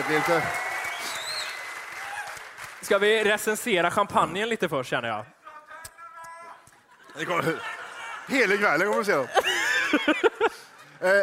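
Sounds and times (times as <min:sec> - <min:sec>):
speech: 0:00.0 - 0:00.7, 0:02.8 - 0:05.4, 0:07.2 - 0:07.7, 0:08.3 - 0:10.2, 0:11.0 - 0:11.2
audience applauding: 0:00.0 - 0:03.7, 0:07.6 - 0:09.7
laughter: 0:06.7 - 0:11.2.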